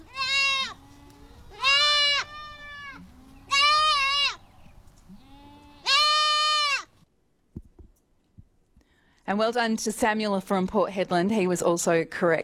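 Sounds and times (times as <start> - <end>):
baby goat kid bleating: 0.0 - 4.4, 5.1 - 6.9
speech: 9.3 - 12.4.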